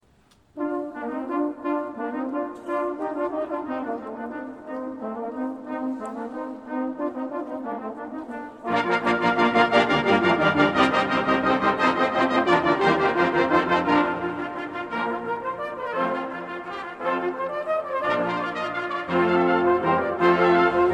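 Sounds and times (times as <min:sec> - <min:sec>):
concerto in B flat major fourth movement allegro: 0:00.0 - 0:20.9.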